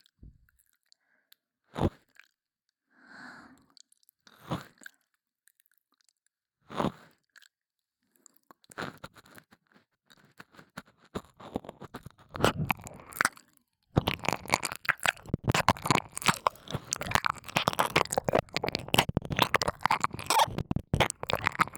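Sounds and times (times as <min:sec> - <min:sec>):
ASMR ear licking in the left channel: 0:12.2 - 0:13.3, 0:14.0 - 0:21.7.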